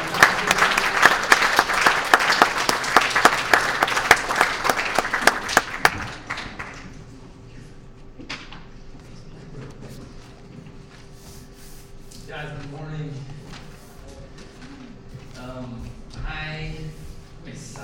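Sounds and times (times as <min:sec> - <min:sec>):
church congregation applause welcoming a guest speaker at Oasis: 0:00.0 - 0:07.2.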